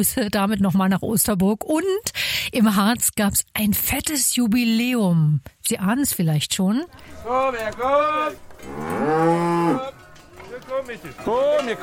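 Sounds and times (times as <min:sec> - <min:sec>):
speech: 0:00.0 - 0:10.0, 0:10.6 - 0:11.8
Harzer Rotes Höhenvieh cow mooing at the cattle festival in Tanne: 0:07.5 - 0:10.3.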